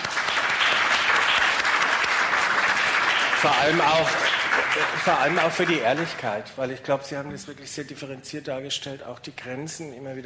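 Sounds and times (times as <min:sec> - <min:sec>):
audience applause for the panel: 0:00.0 - 0:06.4
speech: 0:03.4 - 0:10.2.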